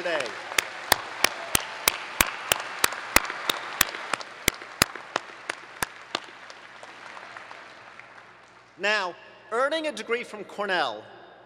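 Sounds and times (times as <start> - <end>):
graduation audience applauding: 0.0 - 8.7
speech: 8.8 - 11.2.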